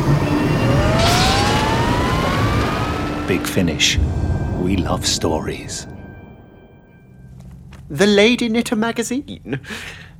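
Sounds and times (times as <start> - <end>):
engines firing up: 0.0 - 7.9
hissing rush: 2.8 - 7.1
speech: 3.3 - 6.0, 7.9 - 10.1.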